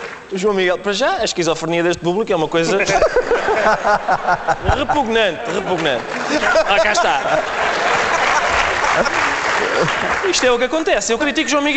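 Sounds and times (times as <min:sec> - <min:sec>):
audience applause: 0:00.0 - 0:00.4, 0:03.5 - 0:11.7
speech: 0:00.3 - 0:07.7, 0:09.0 - 0:11.7
laughter: 0:02.6 - 0:11.7.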